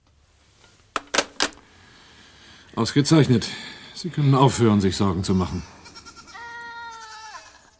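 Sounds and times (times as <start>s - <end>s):
speech: 2.8s - 5.8s
goat bleating after being fed: 5.4s - 7.7s.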